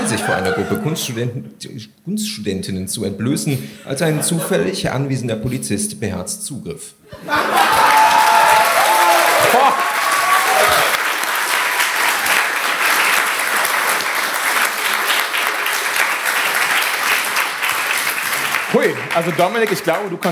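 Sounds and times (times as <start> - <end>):
laughter: 0.0 - 1.3, 3.8 - 4.8, 7.1 - 8.4
speech: 0.1 - 8.1, 18.8 - 20.3
audience applause: 7.3 - 20.3.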